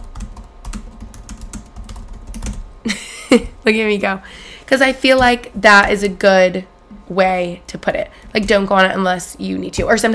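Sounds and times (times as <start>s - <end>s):
rapid keyboard typing: 0.0s - 2.6s
speech: 2.8s - 10.1s.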